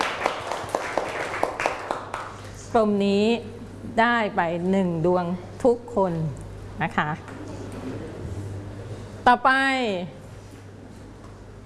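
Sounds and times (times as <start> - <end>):
students in a classroom clapping for a classmate: 0.0 - 2.5
speech: 2.7 - 7.4, 9.3 - 10.2.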